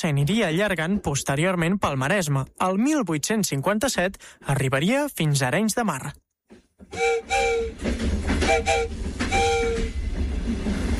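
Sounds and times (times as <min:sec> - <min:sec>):
speech: 0:00.0 - 0:06.2, 0:06.9 - 0:10.0
high-pitched metallic squeals: 0:06.9 - 0:10.1
train rumbling along the rails: 0:06.9 - 0:10.9.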